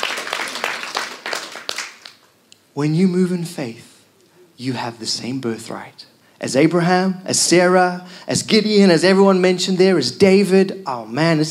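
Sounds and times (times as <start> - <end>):
audience clapping: 0.0 - 2.4
speech: 2.8 - 3.9, 4.6 - 11.4.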